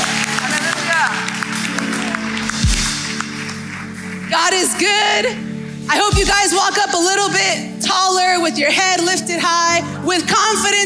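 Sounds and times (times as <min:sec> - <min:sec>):
audience cheering and whooping: 0:00.0 - 0:02.9
audience applause: 0:00.0 - 0:04.4
speech: 0:04.8 - 0:10.8.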